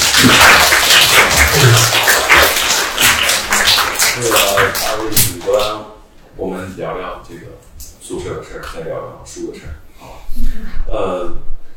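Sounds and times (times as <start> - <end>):
applause: 0.0 - 5.8.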